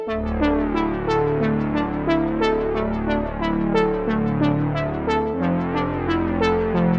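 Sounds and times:
music intro: 0.1s - 6.8s.

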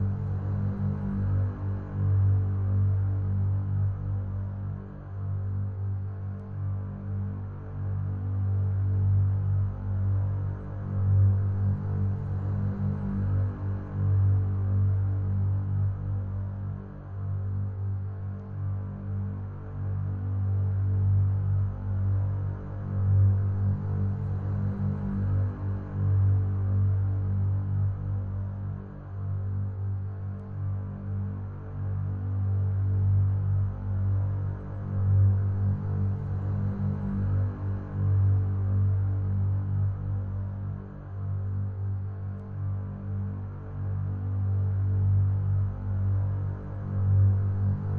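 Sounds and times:
ambient strings layer: 0.0s - 47.9s.

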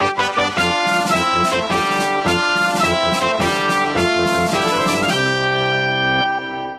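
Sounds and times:
baseball fanfare: 0.0s - 6.7s.

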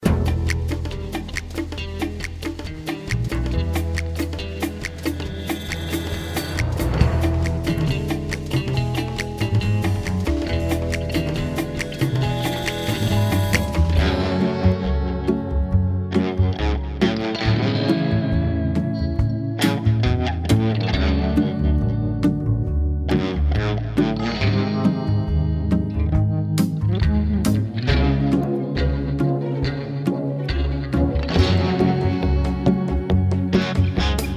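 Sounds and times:
in-game background music: 0.0s - 34.3s.

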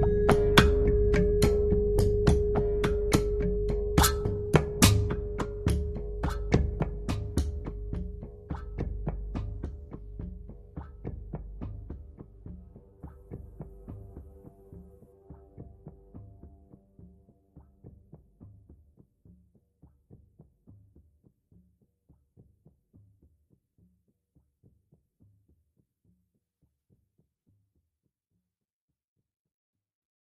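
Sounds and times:
music loop: 0.0s - 9.6s.

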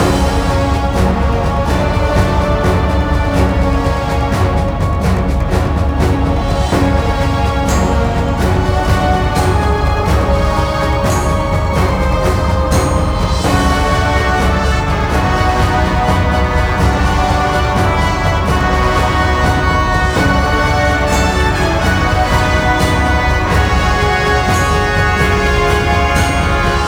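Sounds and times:
victorious cutscene music loop: 0.0s - 26.8s.

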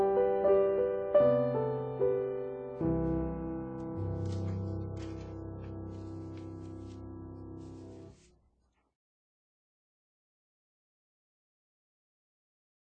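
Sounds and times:
ambient music: 0.0s - 8.2s.

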